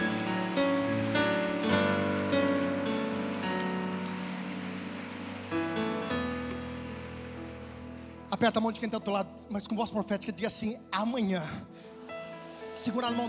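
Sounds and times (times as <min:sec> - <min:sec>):
steady crowd applause: 0:00.0 - 0:08.2
sustained keyboard chords: 0:00.0 - 0:13.2
speech: 0:08.3 - 0:11.9, 0:12.8 - 0:13.2.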